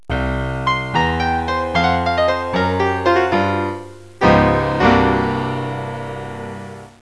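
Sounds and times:
boogie woogie piano ending: 0.0s - 6.9s.

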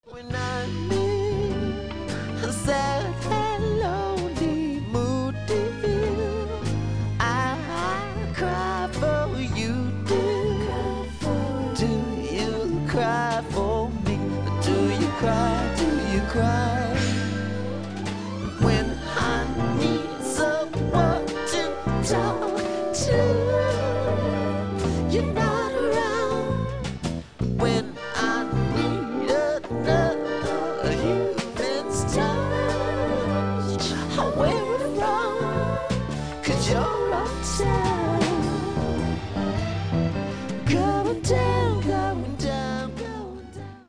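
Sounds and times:
vocals: 0.0s - 43.8s.

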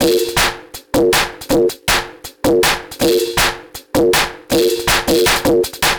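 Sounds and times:
160 bpm drum and bass drum loop: 0.0s - 5.9s.

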